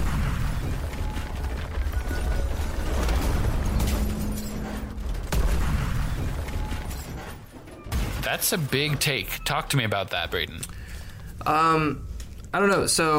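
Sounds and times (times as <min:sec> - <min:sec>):
crashing rubble: 0:00.0 - 0:09.5
crackling fire: 0:00.0 - 0:12.6
speech: 0:08.3 - 0:10.8, 0:11.4 - 0:13.1.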